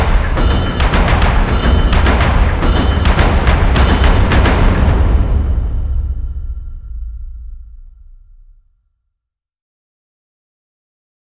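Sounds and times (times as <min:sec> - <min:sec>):
percussion: 0:00.0 - 0:08.7.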